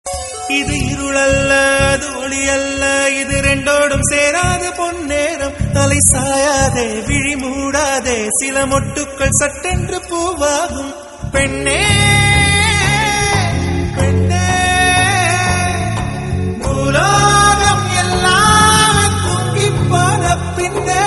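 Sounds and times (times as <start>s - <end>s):
old Tamil song: 0.1s - 21.0s.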